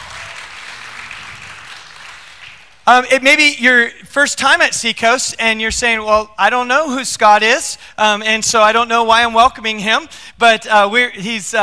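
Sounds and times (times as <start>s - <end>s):
audience applause welcoming a guest and his wife to Seacoast: 0.0s - 2.8s
speech: 2.9s - 11.6s.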